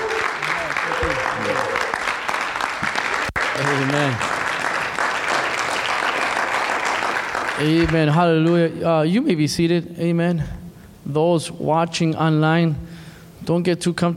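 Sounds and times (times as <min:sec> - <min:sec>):
church audience clapping: 0:00.0 - 0:08.6
speech: 0:03.6 - 0:04.3, 0:07.6 - 0:12.9, 0:13.5 - 0:14.1.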